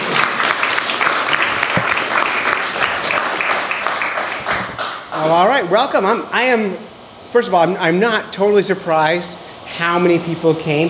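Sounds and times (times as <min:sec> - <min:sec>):
audience round of applause: 0:00.0 - 0:05.3
speech: 0:05.2 - 0:10.8.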